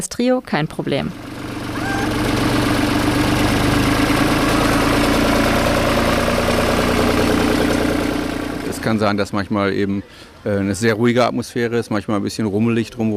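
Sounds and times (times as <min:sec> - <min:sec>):
speech: 0:00.0 - 0:01.3, 0:08.9 - 0:13.1
tractor driving past: 0:00.9 - 0:09.7.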